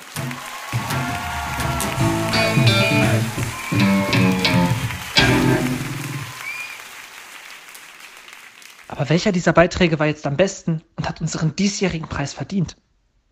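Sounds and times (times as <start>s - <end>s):
applause: 0.0s - 9.2s
speech: 9.0s - 12.9s.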